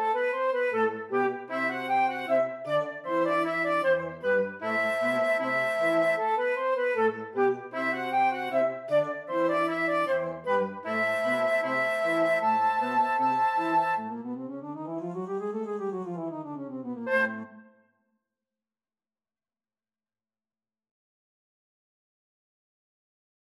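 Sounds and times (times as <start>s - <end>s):
flute: 0.0s - 17.8s.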